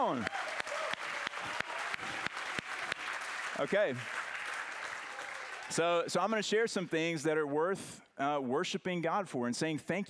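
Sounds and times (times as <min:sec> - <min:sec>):
speech: 0:00.0 - 0:00.5, 0:03.6 - 0:04.2, 0:05.7 - 0:10.0
audience clapping: 0:00.0 - 0:06.0.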